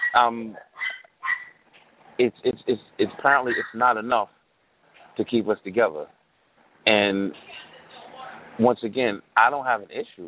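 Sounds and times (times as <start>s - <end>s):
dog barking in the background: 0.0s - 1.6s, 3.4s - 3.9s
speech: 0.1s - 0.8s, 2.2s - 4.4s, 5.2s - 6.2s, 6.8s - 7.6s, 8.6s - 10.2s.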